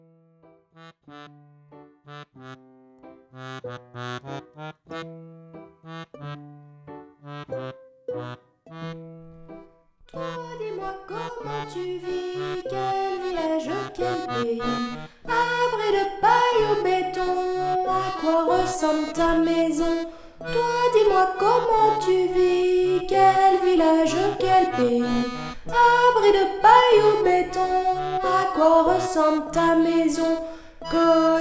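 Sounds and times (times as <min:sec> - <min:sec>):
singing: 0:10.3 - 0:31.3.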